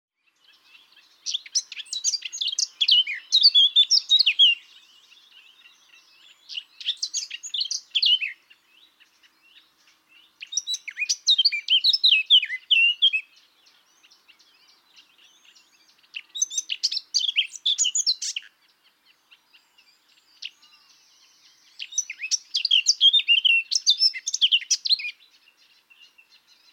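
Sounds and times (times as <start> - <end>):
Eurasian blackcap warbling song: 0.2 - 26.7.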